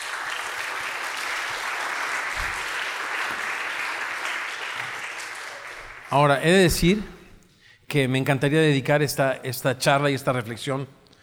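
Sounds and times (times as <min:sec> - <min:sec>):
audience applause: 0:00.0 - 0:06.3
speech: 0:06.1 - 0:07.2, 0:07.9 - 0:11.0.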